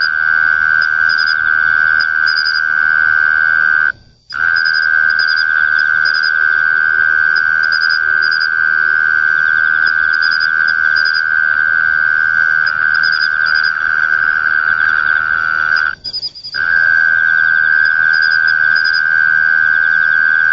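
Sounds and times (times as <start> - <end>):
Mole cricket buzzing trill: 0.0 - 20.5.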